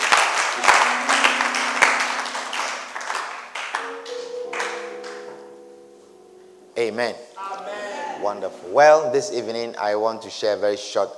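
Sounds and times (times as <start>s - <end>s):
audience applause: 0.0s - 4.9s
sustained low musical notes: 0.6s - 7.2s
speech: 6.8s - 7.6s, 8.2s - 11.1s.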